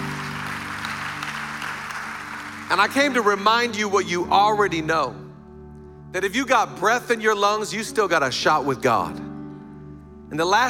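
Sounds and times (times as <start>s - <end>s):
audience clapping: 0.0s - 3.8s
speech: 2.7s - 5.2s, 6.1s - 9.3s, 10.3s - 10.6s.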